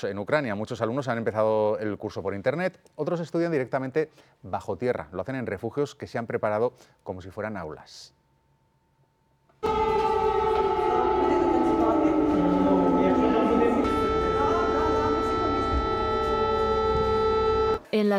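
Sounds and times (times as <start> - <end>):
speech: 0.0 - 8.2
air raid alarm siren: 9.6 - 17.8.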